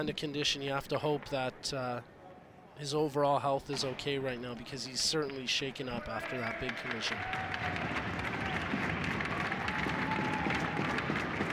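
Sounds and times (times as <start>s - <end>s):
speech: 0.0s - 2.1s, 2.8s - 8.0s
crowd applause: 6.0s - 11.5s.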